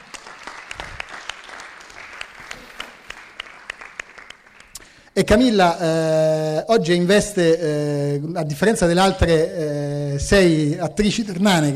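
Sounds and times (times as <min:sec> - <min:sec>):
audience applause: 0:00.0 - 0:04.8
speech: 0:05.2 - 0:11.7.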